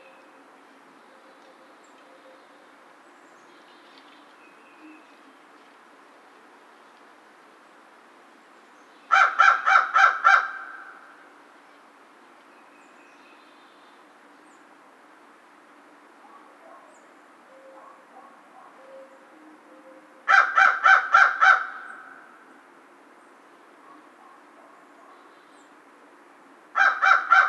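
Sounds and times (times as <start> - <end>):
American crow cawing: 9.1 - 11.1, 20.3 - 22.4, 26.8 - 27.4.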